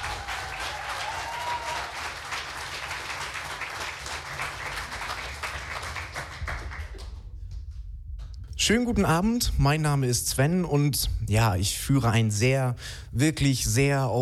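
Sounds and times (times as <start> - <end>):
audience applause: 0.0 - 7.2
speech: 8.7 - 14.2.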